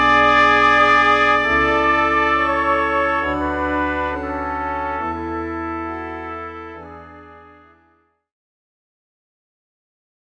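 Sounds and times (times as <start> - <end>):
two trumpets: 0.0 - 8.0.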